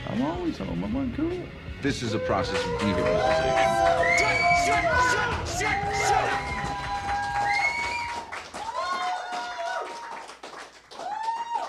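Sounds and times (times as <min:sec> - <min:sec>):
speech: 0:00.2 - 0:06.6
people shouting: 0:02.0 - 0:09.9
audience applause: 0:02.2 - 0:11.6
whistles: 0:02.5 - 0:04.9, 0:05.6 - 0:08.3.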